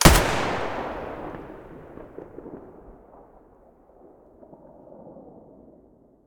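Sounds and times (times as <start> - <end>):
AK105 muzzle blast in stereo: 0.0 - 2.8.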